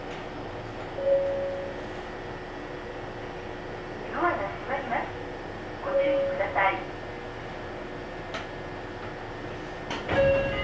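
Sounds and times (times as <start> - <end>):
Ohmi Railway train running: 0.0 - 10.6
brief tone: 1.0 - 1.8, 5.9 - 6.4, 10.1 - 10.6.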